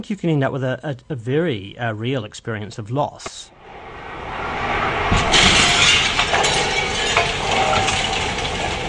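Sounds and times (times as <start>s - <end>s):
speech: 0.0s - 3.6s
old building being demolished: 4.4s - 8.8s.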